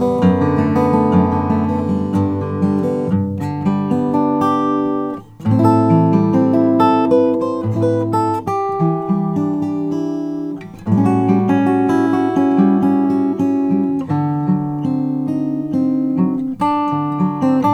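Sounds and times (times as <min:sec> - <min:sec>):
Maingard 000 12c Brazilian rosewood guitar playing: 0:00.0 - 0:17.7.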